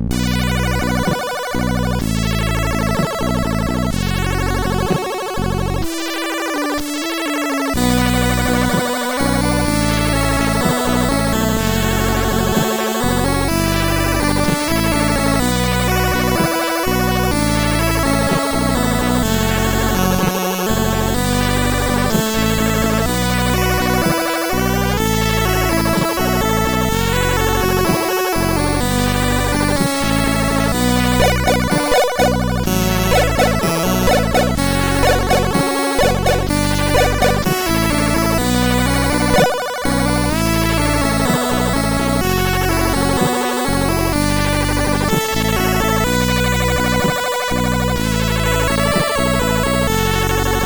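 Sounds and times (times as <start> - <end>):
chiptune end tune on MOS6581R4 SID chip: 0.1 - 50.6.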